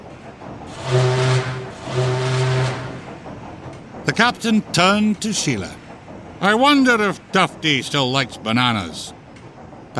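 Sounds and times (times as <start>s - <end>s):
ship horn toots: 0.7s - 3.0s
speech: 4.1s - 5.8s, 6.4s - 9.2s.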